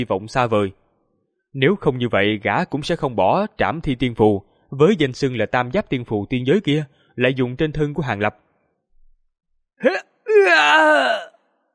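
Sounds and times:
speech: 0:00.0 - 0:00.8, 0:01.5 - 0:08.4, 0:09.8 - 0:11.3
agonized, heart-rending human scream: 0:09.8 - 0:11.4.

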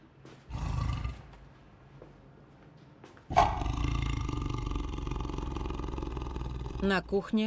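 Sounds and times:
growling roar from the kitchen of a house: 0:00.5 - 0:01.3, 0:03.3 - 0:07.3.

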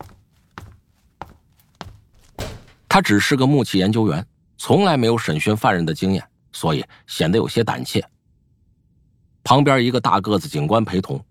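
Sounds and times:
heavy footsteps of a man walking into an interrogation room: 0:00.0 - 0:02.9
speech: 0:03.0 - 0:08.1, 0:09.4 - 0:11.2.

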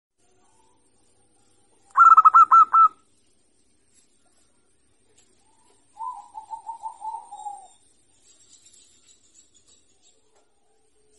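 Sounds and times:
zebra dove singing: 0:02.0 - 0:03.0, 0:05.5 - 0:07.8.

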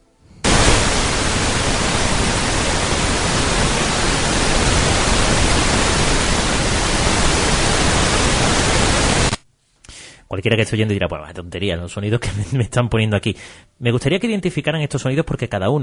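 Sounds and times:
pink noise: 0:00.4 - 0:09.4
speech: 0:10.4 - 0:15.8.

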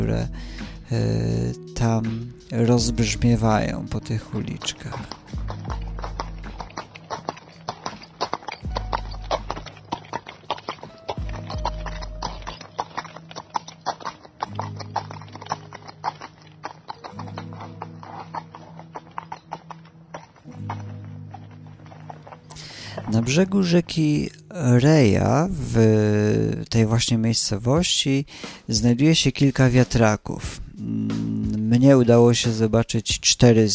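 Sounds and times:
speech: 0:00.0 - 0:05.9, 0:23.3 - 0:30.6, 0:31.7 - 0:33.7
horse hooves clopping: 0:02.2 - 0:24.2.

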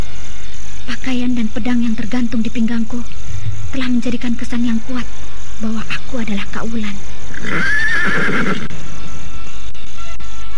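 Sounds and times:
speech: 0:00.9 - 0:08.7
sturdy horse whinnying while being led toward the gate of the Mataram Palace: 0:07.3 - 0:08.7.

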